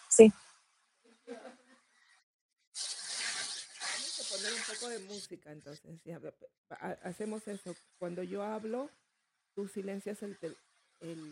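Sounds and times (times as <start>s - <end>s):
speech: 0.2s - 0.4s, 4.4s - 9.0s, 9.6s - 11.3s
steady rain: 2.8s - 5.0s
static hiss: 2.8s - 5.3s.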